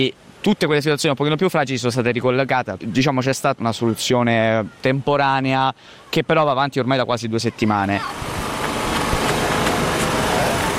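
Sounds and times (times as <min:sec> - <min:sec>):
speech: 0:00.0 - 0:08.2
electric generators running fan blades: 0:07.9 - 0:10.7.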